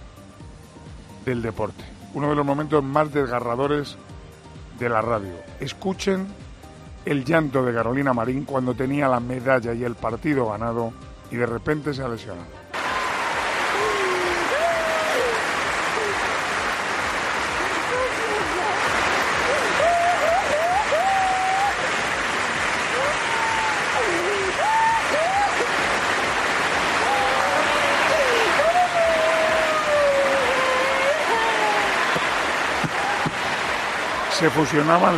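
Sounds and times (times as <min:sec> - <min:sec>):
speech: 0:01.2 - 0:04.1, 0:04.8 - 0:06.4, 0:07.0 - 0:12.6, 0:34.4 - 0:35.1
standing arena crowd applauding: 0:12.8 - 0:35.1.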